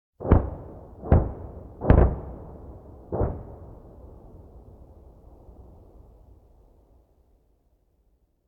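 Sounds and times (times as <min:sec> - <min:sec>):
artillery cannon firing: 0:00.2 - 0:05.0.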